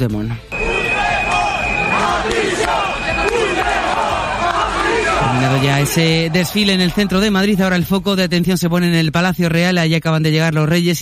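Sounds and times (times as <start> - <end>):
speech: 0.0 - 0.6, 2.0 - 3.4, 5.3 - 11.0
crowd shouting insults: 0.5 - 7.8.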